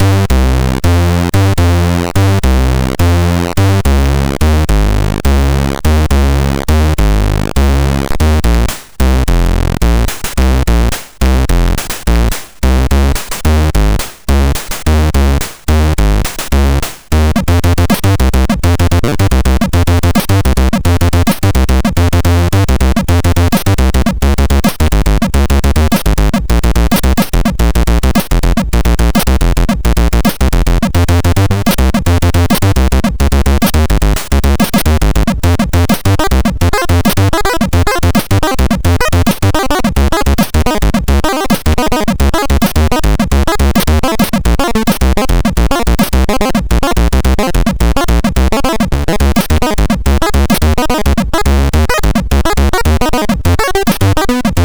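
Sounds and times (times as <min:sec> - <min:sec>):
synthesizer mod wheel pitch symphony: 0:00.0 - 0:54.6.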